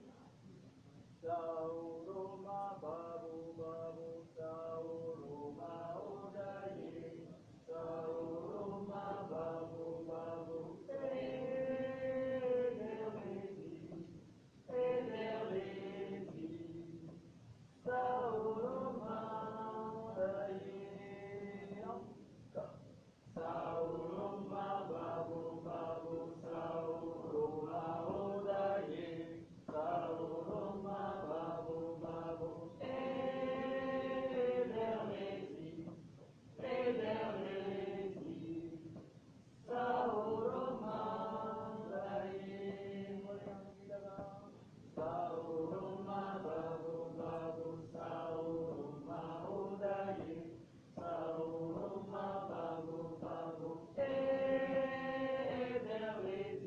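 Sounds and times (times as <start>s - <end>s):
singing voice: 0.0s - 56.6s.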